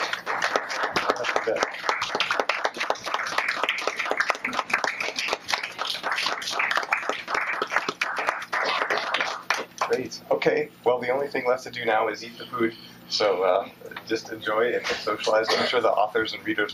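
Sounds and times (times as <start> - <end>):
audience applause: 0.0 - 10.0
speech: 1.5 - 1.9, 10.4 - 16.7.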